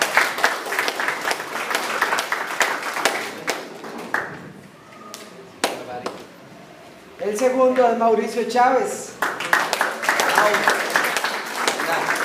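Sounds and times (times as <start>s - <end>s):
audience applause: 0.0s - 4.7s, 9.2s - 12.2s
speech: 7.4s - 9.1s, 10.4s - 10.8s.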